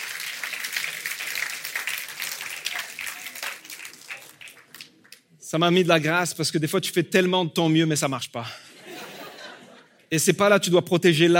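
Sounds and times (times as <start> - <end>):
audience applause for all the dads: 0.0 - 5.2
speech: 5.5 - 8.6, 10.1 - 11.3
laughter: 8.6 - 10.0.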